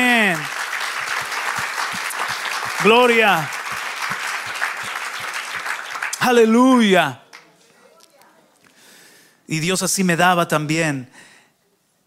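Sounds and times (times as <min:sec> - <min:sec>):
audience applause: 0:00.0 - 0:06.6
speech: 0:02.8 - 0:03.6, 0:06.2 - 0:07.2, 0:09.5 - 0:11.3.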